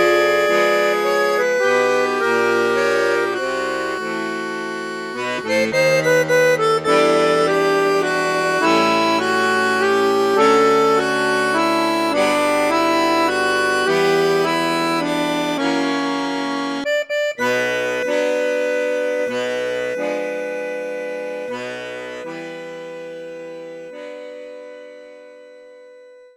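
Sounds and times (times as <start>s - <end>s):
accordion playing on piccolo bassoon register: 0.0s - 26.1s.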